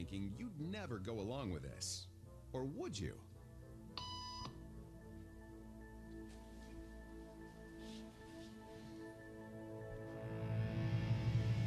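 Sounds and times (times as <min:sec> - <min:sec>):
speech: 0:00.0 - 0:03.3
soft noise: 0:00.0 - 0:11.6
electronic beep: 0:04.0 - 0:04.6.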